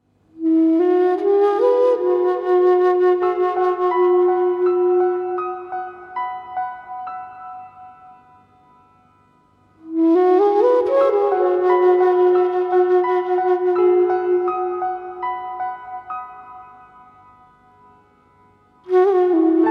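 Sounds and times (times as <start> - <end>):
Anasazi end-blown flute in E: 0.4 - 6.8, 9.8 - 16.5, 18.8 - 19.6.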